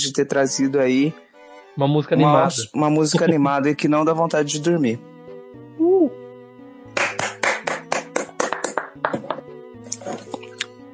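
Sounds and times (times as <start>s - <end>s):
speech: 0.0s - 5.1s
hand clapping: 6.9s - 9.5s.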